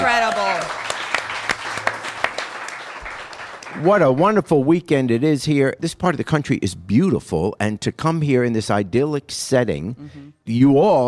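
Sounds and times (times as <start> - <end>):
audience round of applause: 0.0 - 4.4
speech: 3.8 - 11.0.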